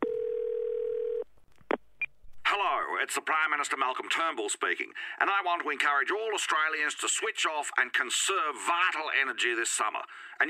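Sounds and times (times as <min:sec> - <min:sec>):
electronic telephone tone before a voicemail: 0:00.0 - 0:01.2
speech: 0:03.0 - 0:10.4.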